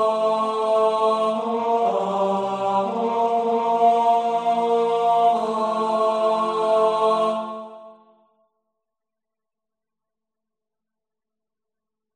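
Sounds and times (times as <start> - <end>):
tenor singing: 0.0 - 8.0.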